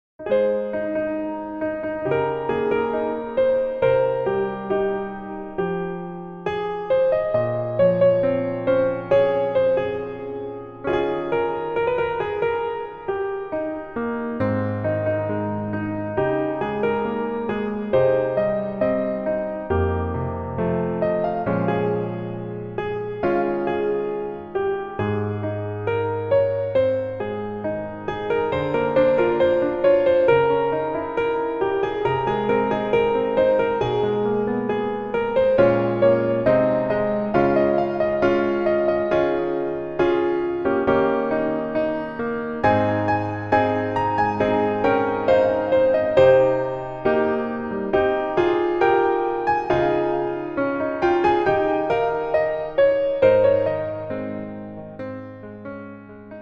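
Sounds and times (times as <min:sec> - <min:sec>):
piano version melody backing track: 0:00.2 - 0:56.3.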